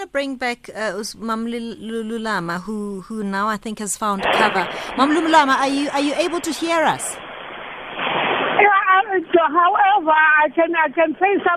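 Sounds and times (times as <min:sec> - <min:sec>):
speech: 0:00.0 - 0:07.3, 0:09.4 - 0:11.5
heavy rain: 0:04.2 - 0:09.9.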